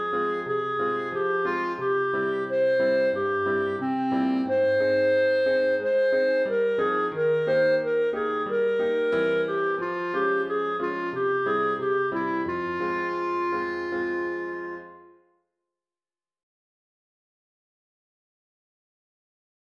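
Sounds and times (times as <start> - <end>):
clarinet melody: 0.0 - 15.5.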